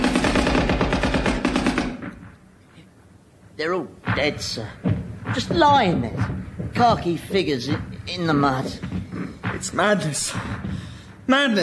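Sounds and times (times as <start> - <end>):
machine gun fire in a Somme battle scene: 0.0 - 2.4
speech: 3.6 - 9.0, 9.6 - 11.6.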